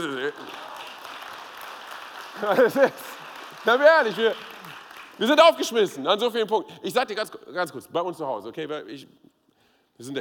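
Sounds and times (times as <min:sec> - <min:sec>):
audience clapping: 0:00.0 - 0:06.1
speech: 0:02.4 - 0:04.5, 0:05.2 - 0:09.3, 0:10.0 - 0:10.2.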